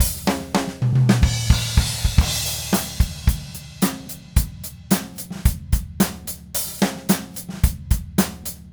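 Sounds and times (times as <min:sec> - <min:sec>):
DW Red Maple drum kit groove: 0:00.0 - 0:08.7.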